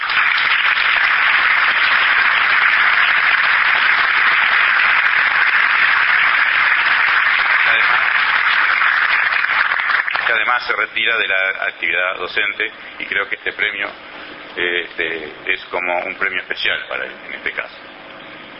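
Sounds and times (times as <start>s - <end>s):
audience applause: 0.0s - 11.1s
speech: 10.5s - 17.9s.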